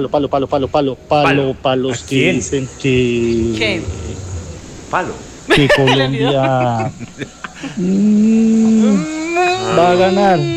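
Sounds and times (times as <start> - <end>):
speech: 0.0 - 4.1, 4.9 - 10.5
laughter: 5.5 - 8.0
human voice imitating a cow mooing: 7.8 - 10.5.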